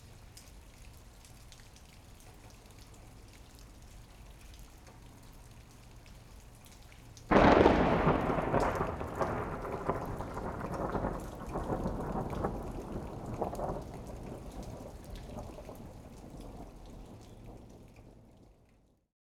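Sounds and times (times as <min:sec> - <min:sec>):
lightning thunder crack: 0:07.3 - 0:16.8.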